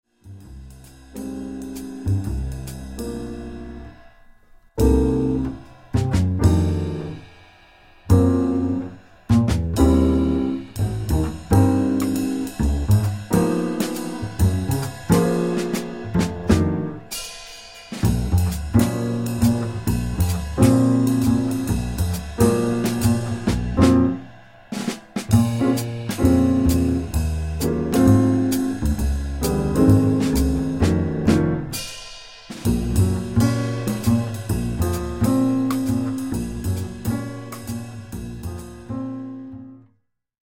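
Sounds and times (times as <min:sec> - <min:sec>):
backing track without melody: 0:01.0 - 0:39.9.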